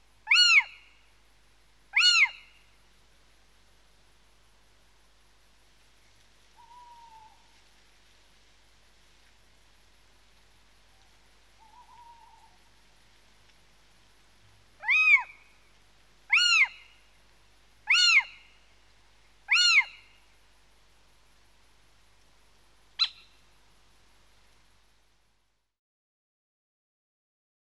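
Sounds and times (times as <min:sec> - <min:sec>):
little owl calling: 0:00.2 - 0:01.0, 0:01.9 - 0:02.8, 0:06.5 - 0:07.7, 0:10.9 - 0:12.8, 0:14.8 - 0:15.7, 0:16.3 - 0:17.1, 0:17.8 - 0:18.6, 0:19.4 - 0:20.4, 0:23.0 - 0:23.4.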